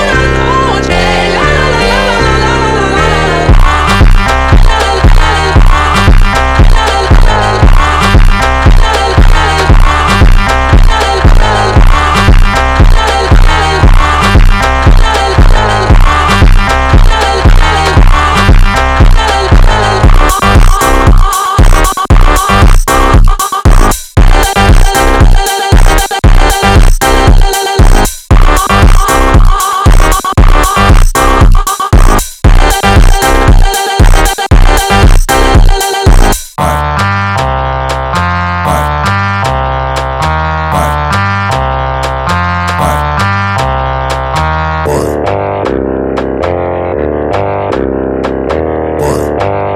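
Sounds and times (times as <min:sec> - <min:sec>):
phonk groove: 0:00.2 - 0:49.7.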